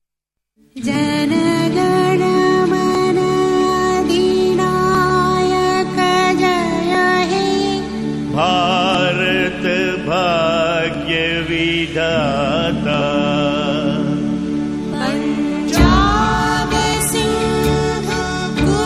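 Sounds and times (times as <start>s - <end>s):
national anthem music: 0.6s - 18.8s.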